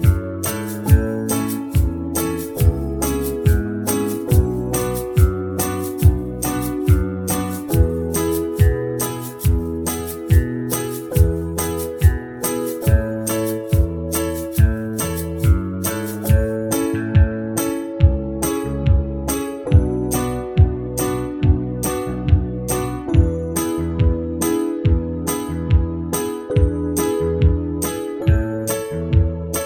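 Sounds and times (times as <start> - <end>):
banjo backing track: 0.0 - 29.6.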